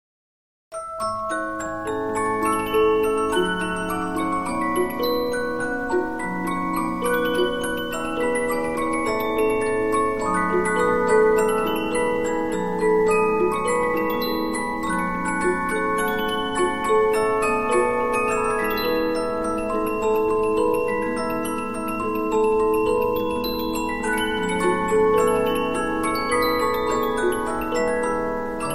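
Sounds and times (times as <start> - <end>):
Polyphon 15-inch disc music box playing: 0.8 - 28.7.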